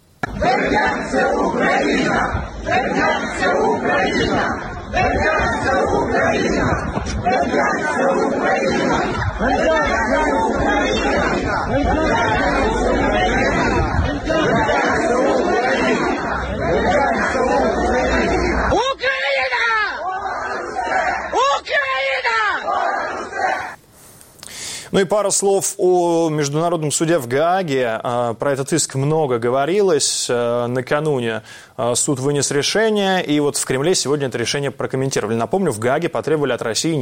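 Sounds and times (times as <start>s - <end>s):
protest crowd shouting slogans: 0.2s - 23.8s
speech: 0.6s - 15.2s, 25.0s - 37.0s.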